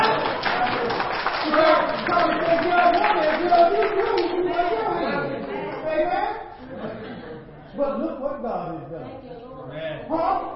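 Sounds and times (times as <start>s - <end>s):
audience clapping: 0.0s - 6.3s
laughter: 0.0s - 8.0s
speech: 7.8s - 10.5s.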